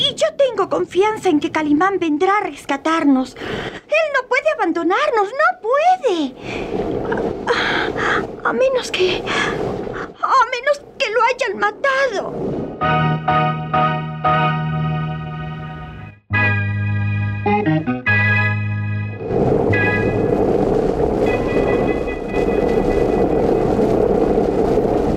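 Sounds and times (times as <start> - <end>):
storm with howling icy wind: 0.0 - 2.2, 6.2 - 13.0, 19.1 - 25.1
speech: 0.3 - 13.6
organ-like musical chords: 12.8 - 20.4.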